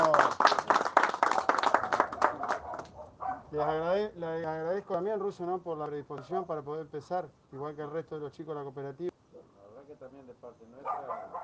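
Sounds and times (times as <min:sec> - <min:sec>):
people clapping: 0:00.0 - 0:03.0
speech: 0:03.6 - 0:09.1.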